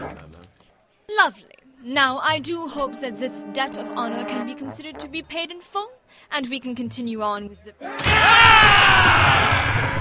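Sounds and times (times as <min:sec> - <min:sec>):
speech: 0:01.1 - 0:09.9
shrieking crowd bursting from kitchen: 0:07.9 - 0:09.9.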